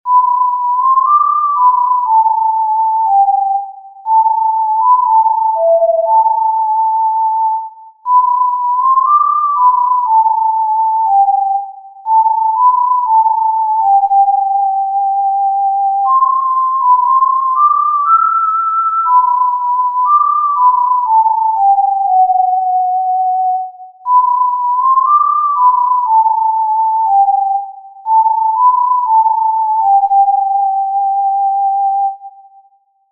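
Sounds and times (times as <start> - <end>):
tin whistle melody in G-D: 0.1 - 33.1.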